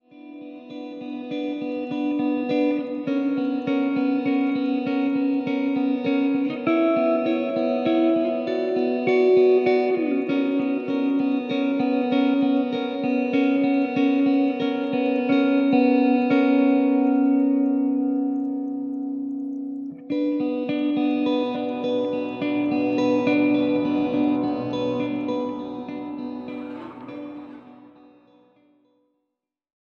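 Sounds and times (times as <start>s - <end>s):
instrumental music: 0.0s - 28.7s.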